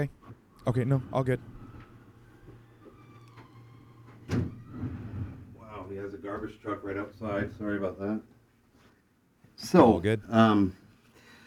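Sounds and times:
speech: 0.0 - 1.6, 4.3 - 4.5, 6.1 - 8.3, 9.6 - 10.8
window being closed: 0.2 - 6.4.

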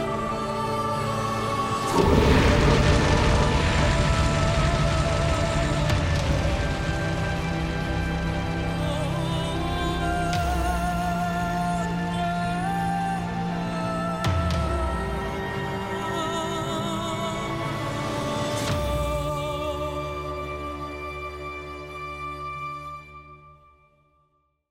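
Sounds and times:
sustained tonal bed: 0.0 - 24.0
Drogon breathing dragonfire on the Night King: 1.4 - 9.2.

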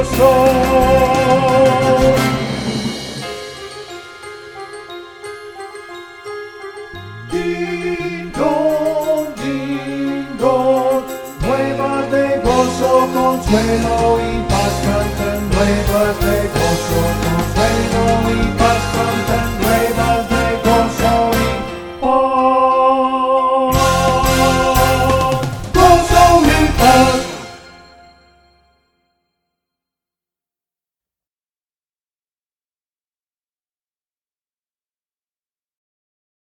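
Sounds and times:
tenor singing: 0.0 - 2.9, 6.8 - 28.1.

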